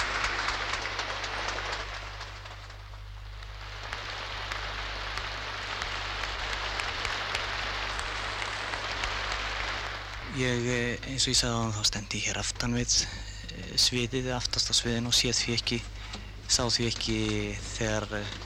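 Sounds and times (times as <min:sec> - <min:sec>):
audience applause: 0:00.0 - 0:10.8
constant low hum: 0:00.0 - 0:18.4
speech: 0:10.4 - 0:15.9, 0:16.5 - 0:18.4.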